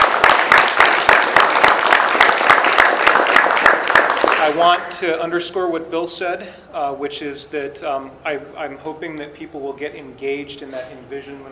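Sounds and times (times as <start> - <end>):
audience applause: 0.0 - 4.8
speech: 4.6 - 11.5.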